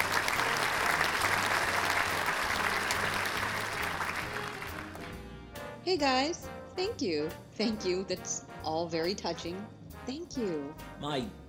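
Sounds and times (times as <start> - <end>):
audience applause welcoming a guest on stage: 0.0 - 5.2
speech: 5.9 - 11.4.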